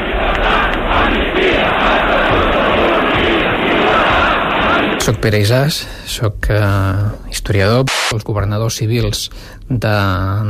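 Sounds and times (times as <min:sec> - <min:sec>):
crowd chanting slogans in the streets: 0:00.0 - 0:05.2
speech: 0:05.0 - 0:10.4.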